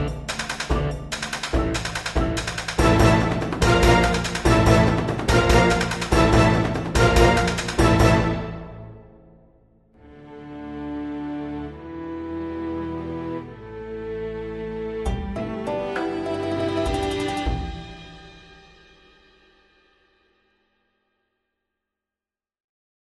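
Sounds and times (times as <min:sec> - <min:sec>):
game boss music: 0:00.0 - 0:09.4, 0:13.1 - 0:18.6.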